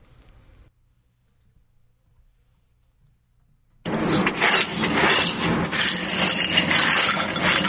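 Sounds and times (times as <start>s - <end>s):
broken window glass fragments clinking: 3.9s - 7.6s.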